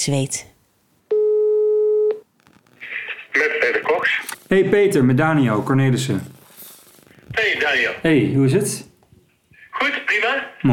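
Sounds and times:
speech: 0:00.0 - 0:00.5, 0:03.4 - 0:06.4, 0:07.4 - 0:08.9, 0:09.8 - 0:10.7
telephone ringing tone while a call is placed: 0:01.1 - 0:02.2
soft hiss: 0:02.3 - 0:09.7.

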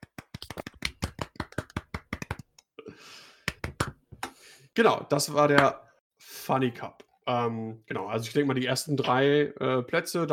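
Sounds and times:
hand claps: 0:00.0 - 0:02.6, 0:03.4 - 0:04.4
speech: 0:04.8 - 0:05.8, 0:06.5 - 0:10.3.

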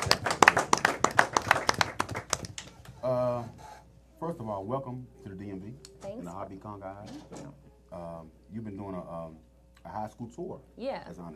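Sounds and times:
audience applause: 0:00.0 - 0:02.8
speech: 0:04.4 - 0:11.3.

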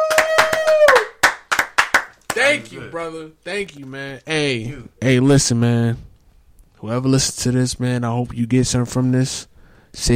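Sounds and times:
hands clapping: 0:00.0 - 0:02.8
speech: 0:02.4 - 0:06.1, 0:06.8 - 0:10.1.

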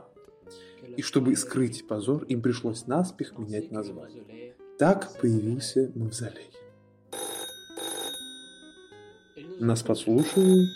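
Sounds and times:
speech: 0:00.5 - 0:06.6, 0:09.6 - 0:10.7
telephone bell ringing for an incoming call: 0:07.1 - 0:10.7.

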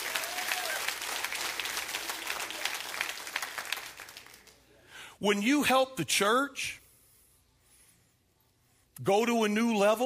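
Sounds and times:
audience clapping: 0:00.0 - 0:04.7
speech: 0:05.2 - 0:06.8, 0:09.0 - 0:10.0.

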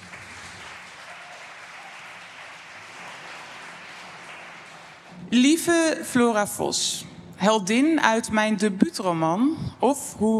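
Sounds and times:
audience applause: 0:00.0 - 0:06.0
speech: 0:05.2 - 0:10.3.

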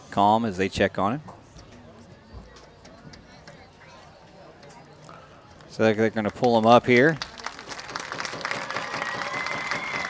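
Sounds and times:
speech: 0:00.2 - 0:01.3, 0:05.8 - 0:07.3
stadium crowd cheering: 0:07.4 - 0:10.0.

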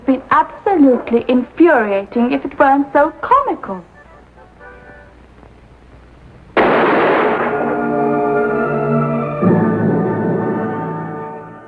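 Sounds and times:
speech: 0:00.4 - 0:03.9
gunshot in a radio drama: 0:06.6 - 0:08.2
dramatic music: 0:06.8 - 0:11.6.

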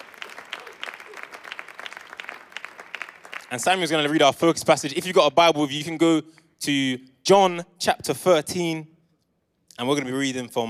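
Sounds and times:
audience applause: 0:00.0 - 0:04.2
speech: 0:03.5 - 0:08.9, 0:09.8 - 0:10.6.

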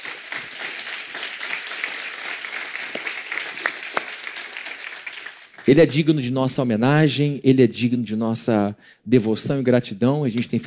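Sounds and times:
audience applauding: 0:00.0 - 0:05.8
speech: 0:05.6 - 0:10.6.

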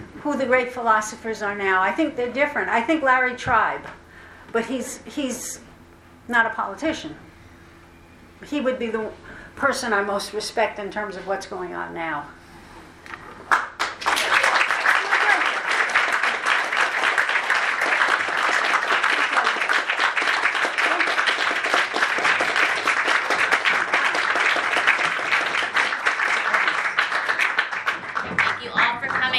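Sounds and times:
speech: 0:00.2 - 0:05.7, 0:06.3 - 0:07.2, 0:08.4 - 0:12.4
audience applause: 0:13.5 - 0:29.3.

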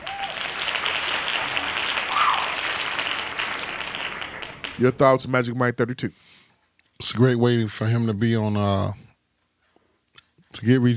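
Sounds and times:
hand claps sound effect: 0:00.0 - 0:04.8
speech: 0:04.8 - 0:06.3, 0:07.0 - 0:09.0, 0:10.5 - 0:10.9.

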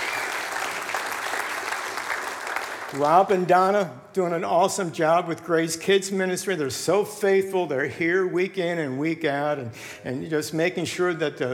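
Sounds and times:
crowd applauding: 0:00.0 - 0:03.5
speech: 0:02.9 - 0:11.5.

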